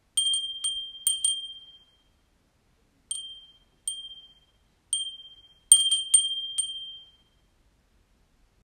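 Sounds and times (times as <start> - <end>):
wind chime: 0.2 - 2.1, 3.1 - 7.5.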